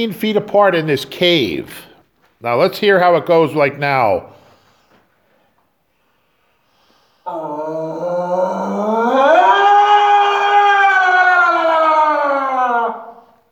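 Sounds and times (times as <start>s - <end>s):
speech: 0.0s - 4.4s, 7.3s - 7.9s
human imitating Sasquatch scream echoing in cave: 7.3s - 13.4s.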